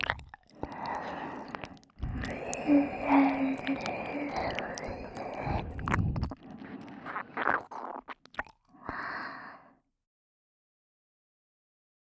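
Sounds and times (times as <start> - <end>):
ear licking sounds on the left: 0.0 - 9.5.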